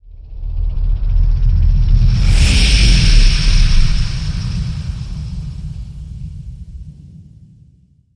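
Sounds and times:
adrenaline rush whoosh: 0:01.3 - 0:07.2.

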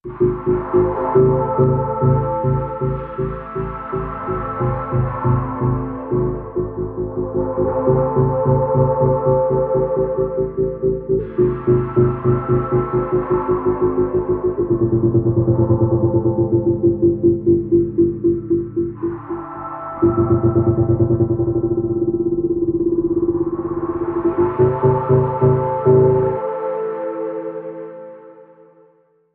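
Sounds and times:
pulsing ambient tone: 0:00.0 - 0:28.2.

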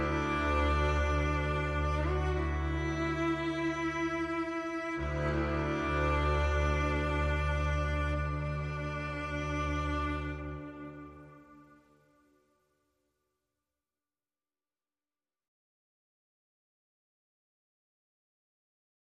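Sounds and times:
strings: 0:00.0 - 0:12.1.

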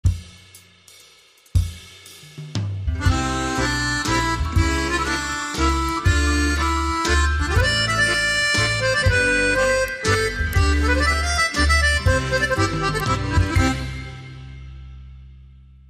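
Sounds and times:
waltz music: 0:03.0 - 0:15.0.

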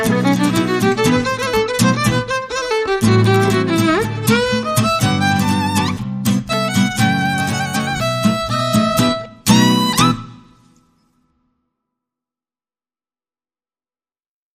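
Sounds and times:
violin: 0:00.0 - 0:10.7
guitars: 0:00.0 - 0:11.1.

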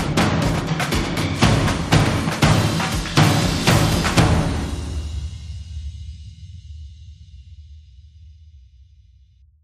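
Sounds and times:
drums beating: 0:00.0 - 0:05.6.

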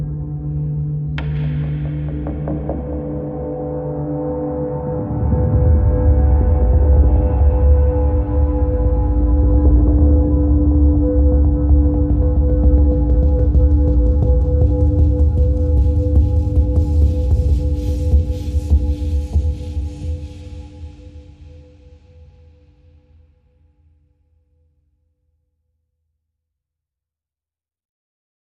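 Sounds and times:
underscore music: 0:00.0 - 0:21.5.

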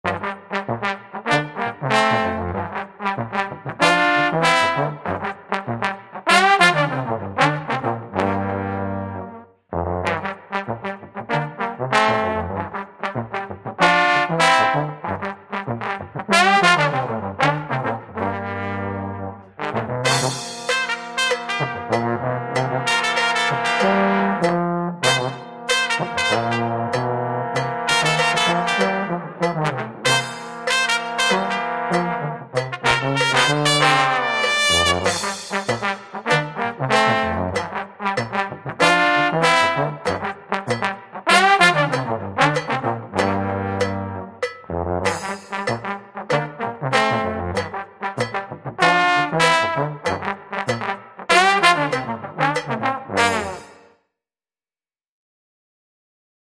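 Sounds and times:
brass instruments: 0:00.0 - 0:53.9
Bavarian funk music: 0:06.3 - 0:09.3, 0:10.0 - 0:53.8
cowbell: 0:20.1 - 0:36.4, 0:37.0 - 0:39.0, 0:40.0 - 0:48.6, 0:50.0 - 0:53.8.

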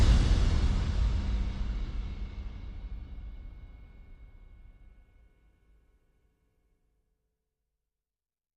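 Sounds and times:
percussion: 0:00.0 - 0:05.7.

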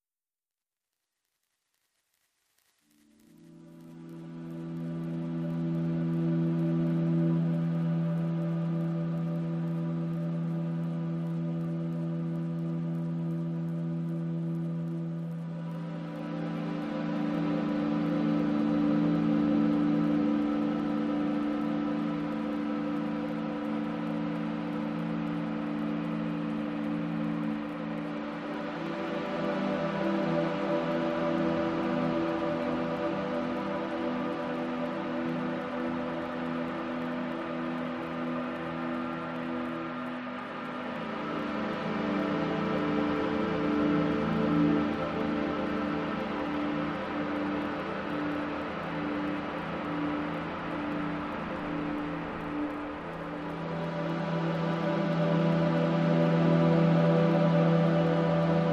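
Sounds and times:
synth pads: 0:02.4 - 0:58.7.

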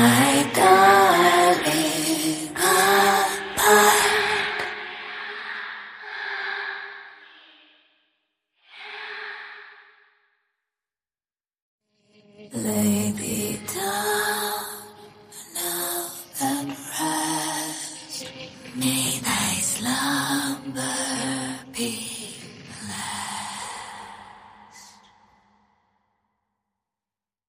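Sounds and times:
horror lullaby vocals only: 0:00.0 - 0:04.7, 0:12.5 - 0:25.0.

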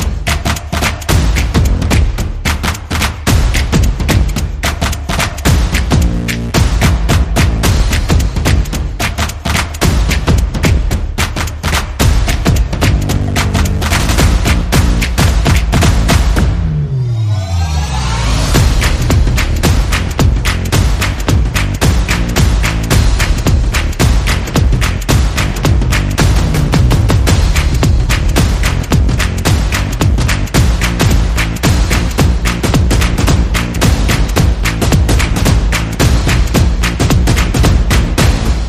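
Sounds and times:
swing music: 0:00.0 - 0:16.4, 0:18.5 - 0:38.6
bass: 0:00.0 - 0:38.6
percussion: 0:00.0 - 0:38.6
sound effects: 0:16.0 - 0:21.0.

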